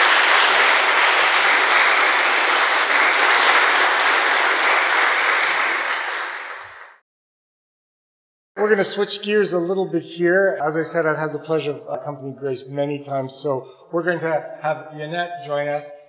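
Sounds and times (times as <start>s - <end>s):
audience applause: 0.0s - 7.0s
speech: 8.7s - 16.0s.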